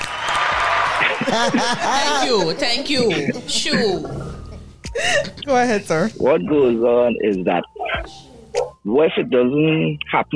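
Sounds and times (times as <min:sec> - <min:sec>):
applause: 0:00.0 - 0:01.7
laughter: 0:00.6 - 0:05.5
speech: 0:01.3 - 0:04.2, 0:05.0 - 0:10.3.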